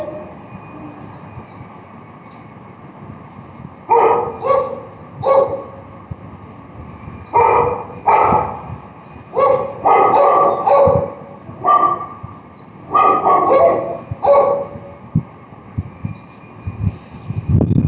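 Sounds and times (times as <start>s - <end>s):
barking: 3.9s - 5.8s, 7.4s - 8.7s, 9.4s - 12.2s, 12.9s - 14.8s.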